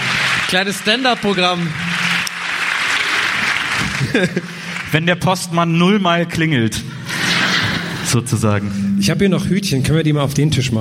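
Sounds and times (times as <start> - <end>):
live audience applauding: 0.0 - 5.6
speech: 0.5 - 1.9, 4.2 - 7.0, 8.1 - 10.8
laughter: 2.9 - 4.9.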